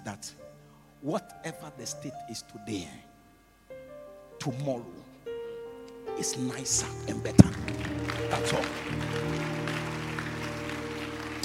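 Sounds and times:
speech: 0.1s - 3.1s, 4.4s - 5.0s, 6.2s - 9.6s
audience clapping: 6.8s - 11.4s.

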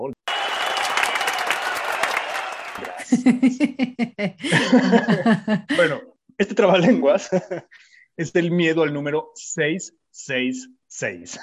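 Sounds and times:
applause sound effect played by production: 0.2s - 3.1s
laughter: 2.6s - 6.0s, 6.6s - 7.7s
speech: 2.8s - 11.4s.

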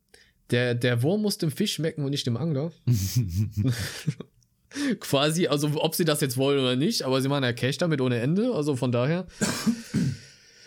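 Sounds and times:
speech: 0.5s - 10.2s
laughter: 2.9s - 4.2s
cough: 9.4s - 10.3s.

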